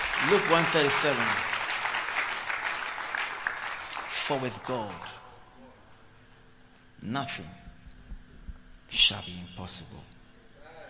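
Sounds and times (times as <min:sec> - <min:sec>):
audience clapping: 0:00.0 - 0:05.3
speech: 0:00.2 - 0:01.5, 0:04.3 - 0:05.2, 0:07.0 - 0:07.6, 0:08.9 - 0:10.1.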